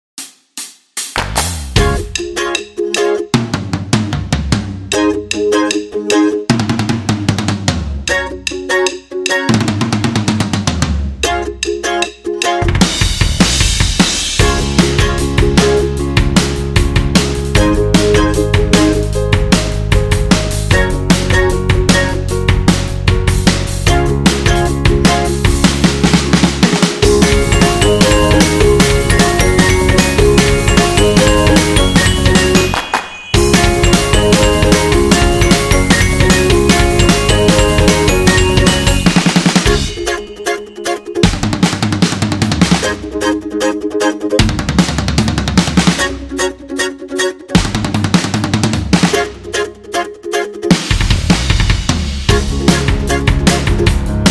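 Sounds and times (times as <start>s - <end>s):
drums playing happy music: 0.2s - 43.3s, 44.4s - 46.4s, 47.5s - 49.7s, 50.7s - 54.3s
ukulele playing happy music: 1.8s - 3.5s, 4.9s - 6.9s, 8.0s - 10.2s, 11.1s - 13.0s, 14.4s - 19.3s, 20.5s - 22.6s, 23.9s - 51.2s, 52.3s - 54.3s.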